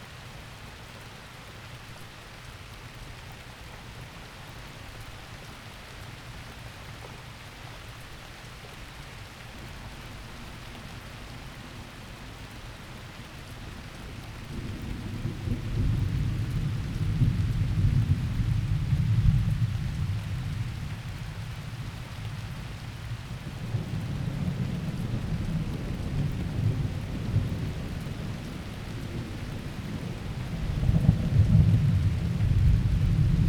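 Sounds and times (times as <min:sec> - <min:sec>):
thunderstorm: 0:14.0 - 0:33.4.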